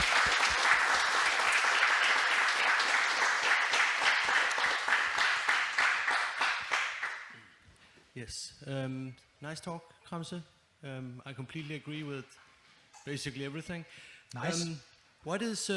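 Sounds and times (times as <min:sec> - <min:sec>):
audience applause: 0:00.0 - 0:07.3
speech: 0:08.2 - 0:15.7.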